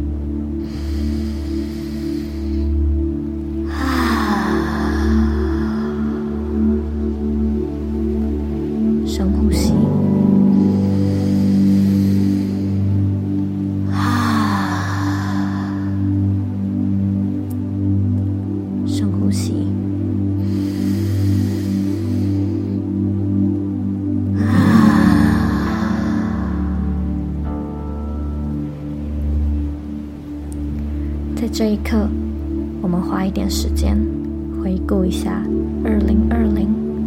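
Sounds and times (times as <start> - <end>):
steady low sustained drone: 0.0 - 33.0
slow deep breaths during a guided meditation: 0.4 - 8.9, 10.0 - 17.4, 20.1 - 31.3
speech: 31.6 - 32.2, 33.1 - 36.3.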